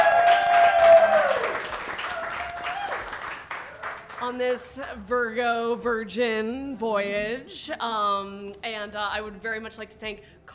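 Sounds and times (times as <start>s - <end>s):
whoops and hollers: 0.0s - 3.1s
studio audience clapping and cheering: 0.0s - 4.4s
speech: 4.3s - 10.5s.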